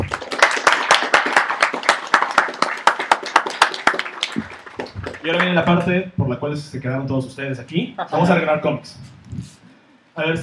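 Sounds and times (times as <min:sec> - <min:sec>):
audience applause: 0:00.0 - 0:05.9
speech: 0:05.3 - 0:09.5, 0:10.2 - 0:10.4.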